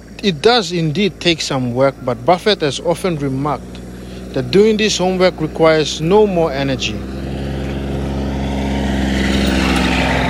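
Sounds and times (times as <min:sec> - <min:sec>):
speech: 0:00.2 - 0:03.8, 0:04.4 - 0:07.1
car passing by: 0:05.2 - 0:10.2.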